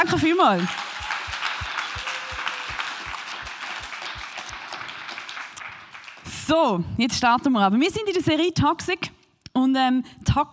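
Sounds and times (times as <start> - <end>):
speech: 0.0 - 0.9, 6.5 - 10.5
audience applause for the band: 0.0 - 6.3.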